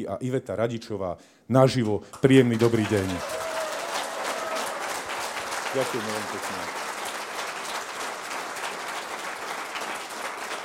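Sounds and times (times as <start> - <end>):
speech: 0.0 - 3.5, 5.8 - 6.8
audience applause: 2.6 - 10.6.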